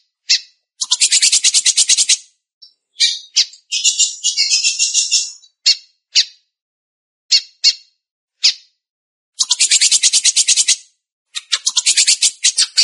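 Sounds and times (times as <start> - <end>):
Belgian canary singing fast buzzy trills: 0.3 - 5.5, 9.4 - 12.8.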